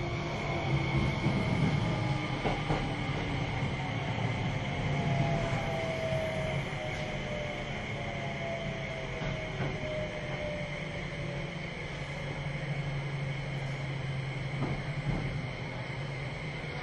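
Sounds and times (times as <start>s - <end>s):
Keio 5000 series train running rumble: 0.0s - 16.8s.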